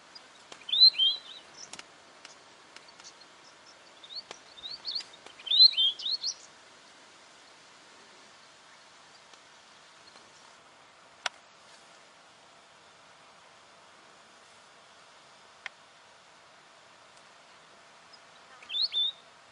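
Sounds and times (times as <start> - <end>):
weebill singing ticking notes and warbled phrases: 0.0 - 6.6, 18.0 - 19.3.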